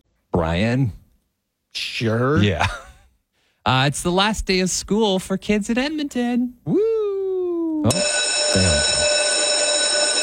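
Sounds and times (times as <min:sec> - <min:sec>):
speech: 0:00.4 - 0:01.0, 0:01.8 - 0:02.8, 0:03.6 - 0:06.9, 0:07.8 - 0:09.1
school bell ringing with reverb in a tower: 0:07.9 - 0:10.2.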